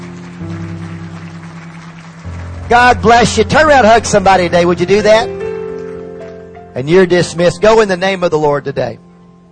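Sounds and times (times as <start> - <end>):
church congregation clapping as a clap offering: 0.0 - 6.8
sustained low organ-like chords: 0.0 - 9.5
speech: 2.7 - 5.4, 6.8 - 9.0.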